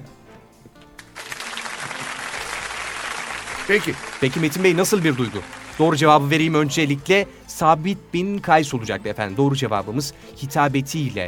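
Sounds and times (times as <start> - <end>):
audience applause: 1.0 - 6.1
speech: 3.7 - 11.2.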